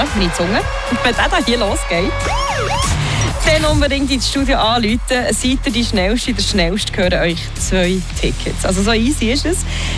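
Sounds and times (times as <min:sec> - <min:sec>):
radio station ticket alarm sound effect with siren-like wailing tones: 0:00.0 - 0:04.0
speech: 0:00.2 - 0:09.9.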